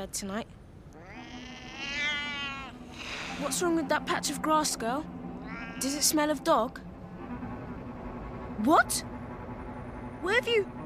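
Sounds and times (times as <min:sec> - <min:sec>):
speech: 0:00.0 - 0:00.6, 0:03.4 - 0:05.2, 0:05.8 - 0:06.9, 0:08.6 - 0:09.1, 0:10.2 - 0:10.8
cat meowing: 0:00.9 - 0:02.8, 0:05.4 - 0:06.1.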